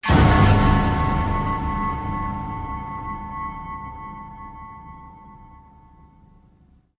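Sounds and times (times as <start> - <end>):
danger warning sound effect: 0.0 - 6.6.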